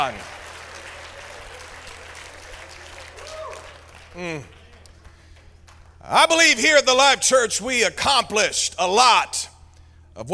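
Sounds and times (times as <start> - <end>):
speech: 0.0 - 0.4, 4.2 - 4.6, 6.0 - 9.5, 10.2 - 10.3
audience clapping hands: 0.0 - 6.6.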